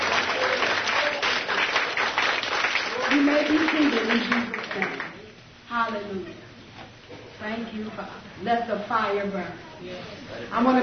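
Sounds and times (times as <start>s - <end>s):
crowd clapping: 0.0s - 5.3s
speech: 3.1s - 6.5s, 7.4s - 10.8s.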